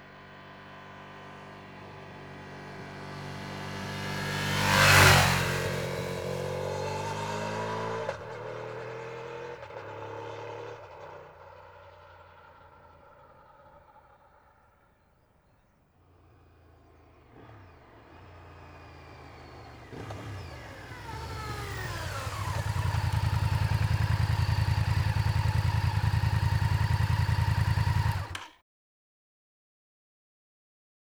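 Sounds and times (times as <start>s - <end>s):
Honda VTR 1000 F motorcycle engine: 0.1s - 28.5s.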